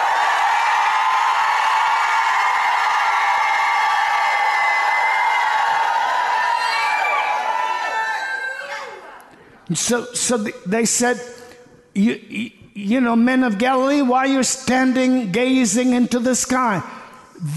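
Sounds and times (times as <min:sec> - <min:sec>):
large crowd shouting and cheering: 0:00.0 - 0:09.4
speech: 0:09.7 - 0:11.4, 0:12.0 - 0:17.5.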